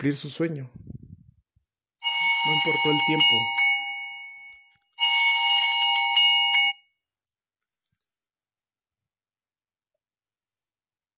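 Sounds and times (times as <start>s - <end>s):
speech: 0.0s - 0.8s, 2.4s - 3.6s
small alarm ringing: 2.0s - 7.0s.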